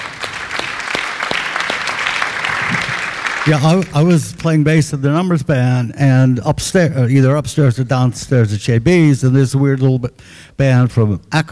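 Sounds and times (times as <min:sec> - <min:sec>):
audience applause for a musician: 0:00.0 - 0:04.2
speech: 0:03.4 - 0:11.5.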